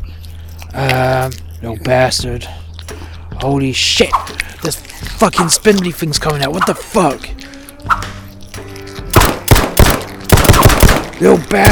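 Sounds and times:
speech: 0.7 - 2.6, 3.4 - 8.0, 11.2 - 11.7
video game automatic gunfire: 9.1 - 11.7.

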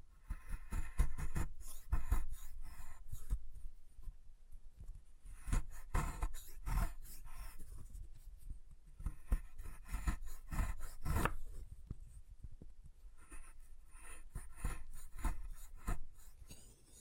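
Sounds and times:
chalk being carved and cut: 0.2 - 3.4, 5.3 - 8.4, 9.0 - 11.6, 13.2 - 16.9.

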